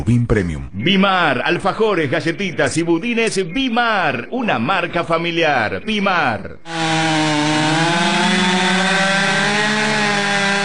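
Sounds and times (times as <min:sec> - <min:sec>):
speech: 0:00.0 - 0:07.8
chainsaw running: 0:06.7 - 0:10.6.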